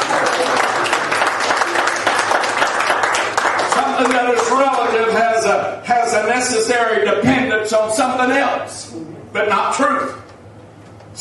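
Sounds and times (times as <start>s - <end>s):
audience clapping: 0.0s - 5.1s
speech: 4.0s - 10.2s.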